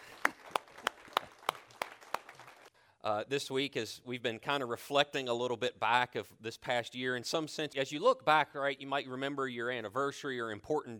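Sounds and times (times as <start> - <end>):
sharp rhythmic claps: 0.0 - 2.7
speech: 3.0 - 10.9.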